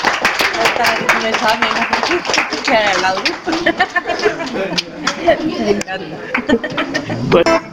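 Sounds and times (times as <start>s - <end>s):
audience applause: 0.0s - 5.2s
laughter: 0.9s - 7.5s.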